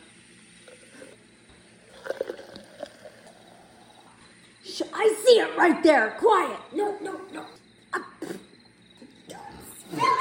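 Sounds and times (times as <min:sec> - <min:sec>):
drink pouring into a container: 0:00.6 - 0:04.2
speech: 0:05.0 - 0:07.6.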